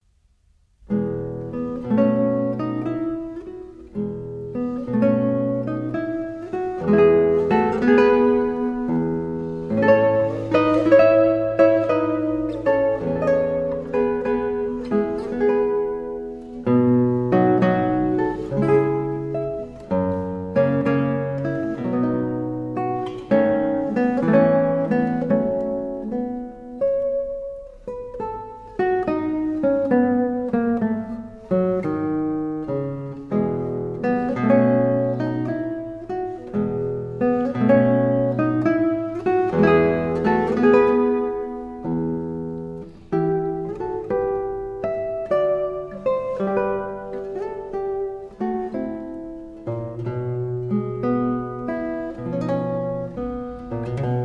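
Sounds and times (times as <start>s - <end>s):
prelude: 0.8s - 54.2s.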